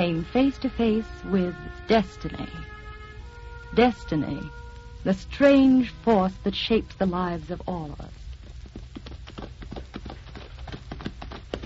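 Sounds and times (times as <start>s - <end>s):
speech: 0.0s - 2.8s, 3.7s - 8.2s
horse galloping with a rider: 8.4s - 11.6s.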